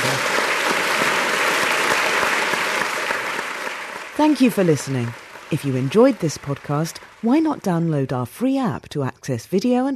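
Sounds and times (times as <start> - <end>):
audience applause: 0.0 - 7.8
speech: 4.2 - 9.9.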